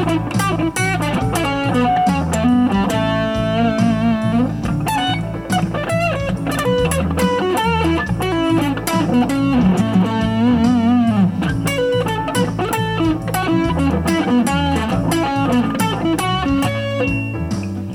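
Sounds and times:
claves on second line groove: 0.0 - 17.9.

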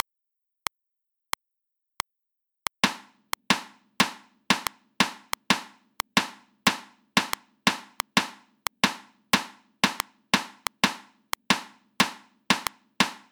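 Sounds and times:
reversed sixteenth-note rhythms at 90 BPM: 2.8 - 13.3.

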